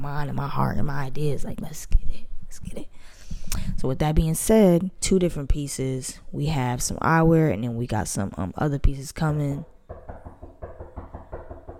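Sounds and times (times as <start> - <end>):
speech: 0.0 - 9.7
knocking on a door: 9.6 - 11.7.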